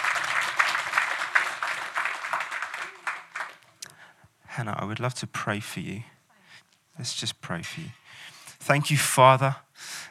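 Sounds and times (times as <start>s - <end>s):
audience clapping: 0.0s - 3.9s
speech: 4.6s - 6.1s, 7.0s - 9.9s.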